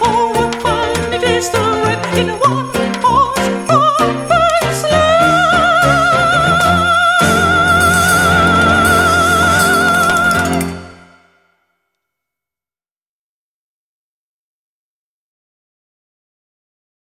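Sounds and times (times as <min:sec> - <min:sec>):
Christmas song: 0:00.0 - 0:11.7.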